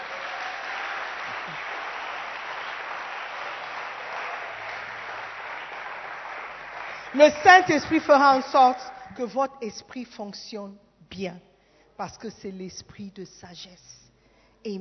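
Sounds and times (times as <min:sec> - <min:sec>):
worship congregation applauding in acclaim of the Holy Spirit: 0:00.0 - 0:08.3
speech: 0:07.1 - 0:14.0, 0:14.6 - 0:14.8.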